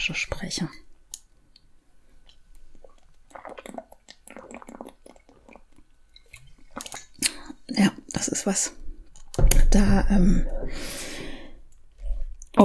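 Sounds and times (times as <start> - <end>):
speech: 0.0 - 0.9, 7.8 - 8.8, 9.7 - 11.0
person drinking: 2.1 - 7.7, 10.1 - 12.5.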